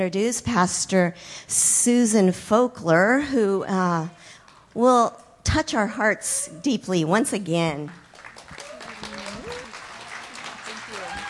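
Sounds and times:
speech: 0:00.0 - 0:08.0
audience clapping: 0:07.9 - 0:11.2.

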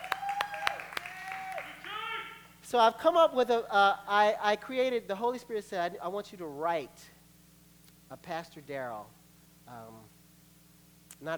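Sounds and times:
audience clapping: 0:00.0 - 0:02.5
high tonal whoops: 0:00.0 - 0:02.5
speech: 0:02.7 - 0:07.2, 0:08.1 - 0:10.2.

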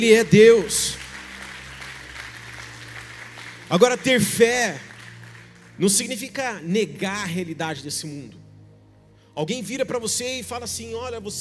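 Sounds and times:
speech: 0:00.0 - 0:01.0, 0:03.7 - 0:04.9, 0:05.8 - 0:08.4, 0:09.4 - 0:11.3
audience applause: 0:00.9 - 0:05.8.

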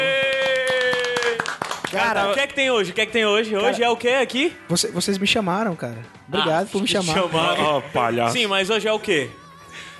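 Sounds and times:
applause, hands clapping: 0:00.0 - 0:02.8
speech: 0:01.9 - 0:09.4.

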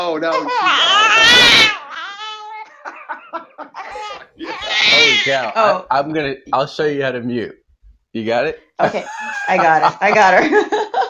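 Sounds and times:
speech: 0:00.0 - 0:01.6, 0:05.2 - 0:10.8
baby crying and babbling: 0:00.2 - 0:02.9, 0:03.8 - 0:05.6
laughter: 0:02.7 - 0:05.3, 0:08.8 - 0:11.0.

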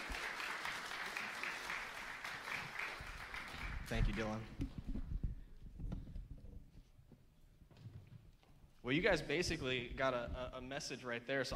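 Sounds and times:
crowd applauding: 0:00.0 - 0:04.5
speech: 0:03.9 - 0:04.8, 0:08.9 - 0:11.5.

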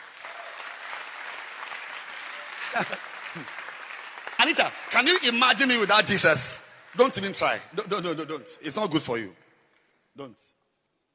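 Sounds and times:
audience clapping: 0:00.0 - 0:08.5
laughter: 0:02.5 - 0:03.6
speech: 0:02.8 - 0:03.6, 0:04.4 - 0:09.4, 0:10.2 - 0:10.6.

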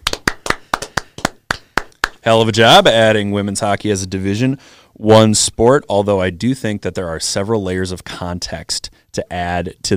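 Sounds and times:
hand clapping: 0:00.0 - 0:02.3
speech: 0:02.2 - 0:09.9.

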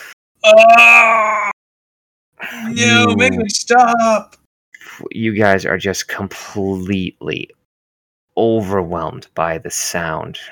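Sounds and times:
person voicing a creature's scream: 0:00.4 - 0:01.6, 0:02.7 - 0:04.3
speech: 0:00.5 - 0:01.5, 0:02.6 - 0:04.4, 0:05.0 - 0:07.6, 0:08.4 - 0:10.4.

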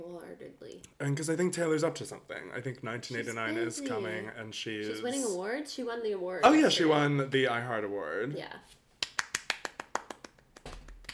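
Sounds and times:
speech: 0:00.0 - 0:08.8
sharp hand claps: 0:09.0 - 0:11.1.

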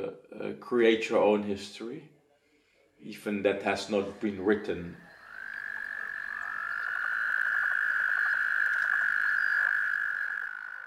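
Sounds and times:
speech: 0:00.1 - 0:02.1, 0:03.0 - 0:05.0
toads croaking during mating: 0:03.6 - 0:10.8.

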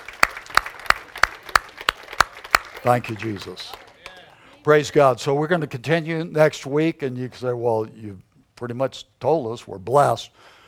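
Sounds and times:
audience clapping: 0:00.0 - 0:04.9
speech: 0:02.8 - 0:03.8, 0:04.6 - 0:10.6.

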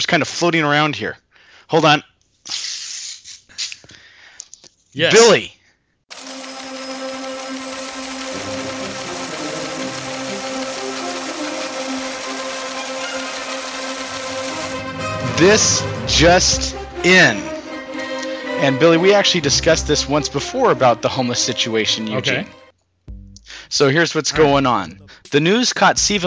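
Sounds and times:
speech: 0:00.0 - 0:02.7, 0:05.0 - 0:05.6, 0:15.4 - 0:17.5, 0:18.6 - 0:22.6, 0:23.7 - 0:26.2
teletype machine printing: 0:06.1 - 0:14.8.

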